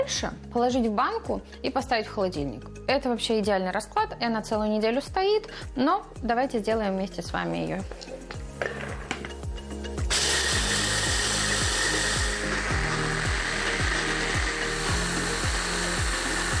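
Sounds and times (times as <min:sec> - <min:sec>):
speech: 0:00.0 - 0:08.8
blender blending paste: 0:10.1 - 0:16.5.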